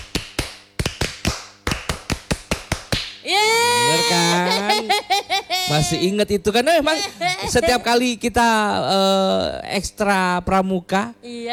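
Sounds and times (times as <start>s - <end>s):
scout rhythmic hand clapping: 0.0s - 3.2s
laughter: 3.4s - 6.2s, 6.8s - 8.0s
speech: 5.7s - 11.5s.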